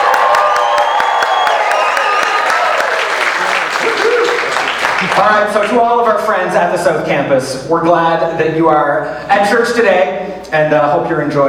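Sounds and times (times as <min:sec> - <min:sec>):
audience cheering and applauding: 0:00.0 - 0:05.3
speech: 0:05.2 - 0:11.4.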